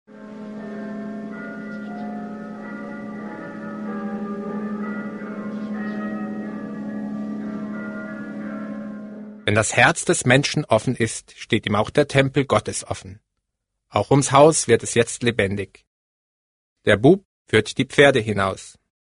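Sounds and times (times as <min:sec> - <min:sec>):
church bells ringing across valleys: 0:00.1 - 0:09.7
speech: 0:09.5 - 0:13.3, 0:13.9 - 0:15.9, 0:16.8 - 0:18.8.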